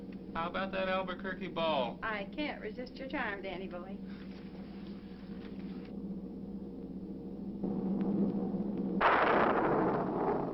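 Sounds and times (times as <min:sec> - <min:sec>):
speech: 0:00.4 - 0:04.2
thunder: 0:07.6 - 0:10.5.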